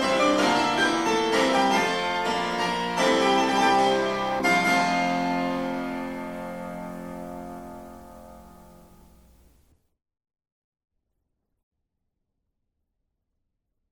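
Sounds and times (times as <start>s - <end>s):
fugue: 0.0s - 9.4s.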